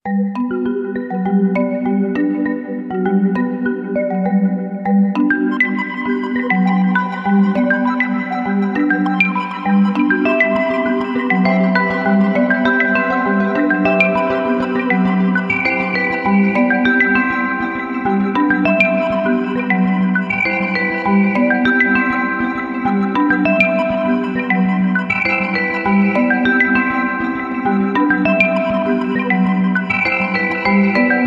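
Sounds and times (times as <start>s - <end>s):
ambient bells: 0.0s - 31.2s.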